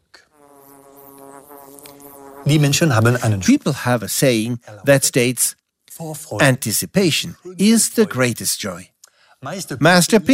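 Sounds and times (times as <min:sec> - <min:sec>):
bees buzzing around a tree: 0:00.3 - 0:03.3
speech: 0:02.4 - 0:10.3.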